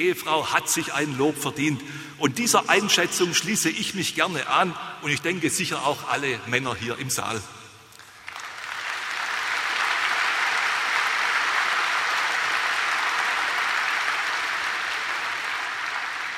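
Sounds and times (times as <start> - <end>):
speech: 0.0 - 7.6
audience applause: 8.0 - 16.3.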